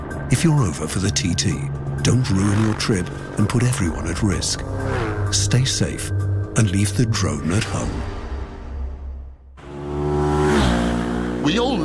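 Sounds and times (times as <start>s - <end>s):
speech: 0.3s - 8.2s
racing motorbike engine revving: 1.5s - 6.5s, 9.6s - 11.8s.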